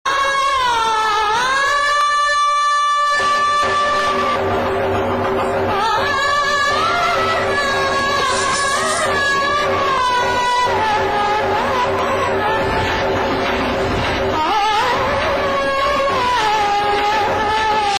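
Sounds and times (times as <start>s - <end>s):
background music: 0.1s - 17.9s.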